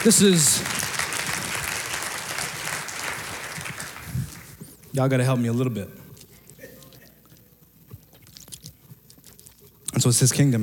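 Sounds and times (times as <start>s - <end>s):
speech: 0.0s - 0.9s, 5.0s - 6.0s, 10.0s - 10.6s
audience clapping: 0.0s - 4.6s.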